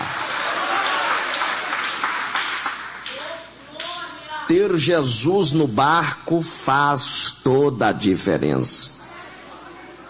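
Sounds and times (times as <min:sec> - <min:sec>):
audience applauding: 0:00.0 - 0:03.4
speech: 0:04.5 - 0:09.0.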